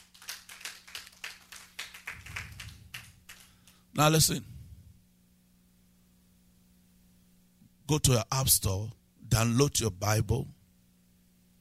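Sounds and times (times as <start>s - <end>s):
audience clapping: 0.0s - 3.8s
speech: 4.0s - 4.5s, 7.9s - 10.6s.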